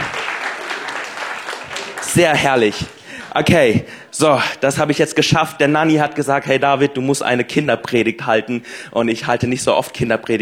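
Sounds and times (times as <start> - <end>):
applause: 0.0 - 3.0
speech: 2.2 - 10.3.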